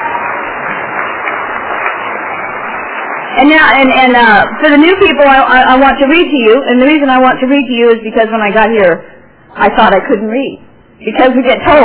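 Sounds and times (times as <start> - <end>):
audience applause at a group meeting welcoming new members: 0.0 - 3.8
speech: 3.4 - 11.8.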